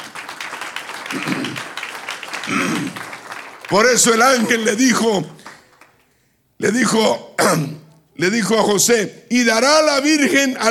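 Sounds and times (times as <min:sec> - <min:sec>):
audience applause: 0:00.0 - 0:06.2
speech: 0:01.1 - 0:01.4, 0:03.7 - 0:05.4, 0:06.6 - 0:10.6.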